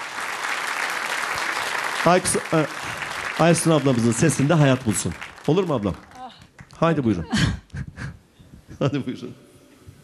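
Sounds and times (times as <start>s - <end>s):
audience applause at a Turkish classical music performance: 0.0s - 7.3s
speech: 2.0s - 6.1s, 6.8s - 7.6s, 8.8s - 9.5s.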